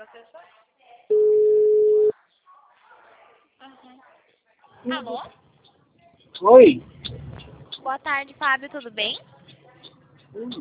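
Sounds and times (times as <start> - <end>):
faint voices on the telephone line: 0.0 - 10.5
speech: 0.1 - 1.3, 4.8 - 5.4, 6.4 - 6.9, 7.8 - 9.3, 10.3 - 10.5
telephone ringback tone on an outgoing call: 1.1 - 2.1.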